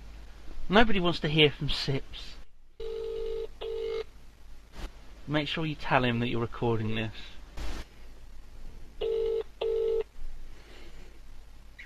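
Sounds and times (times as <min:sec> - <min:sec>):
speech: 0:00.7 - 0:02.4, 0:05.3 - 0:07.4
telephone call ringing tones: 0:02.8 - 0:04.1, 0:09.0 - 0:10.1.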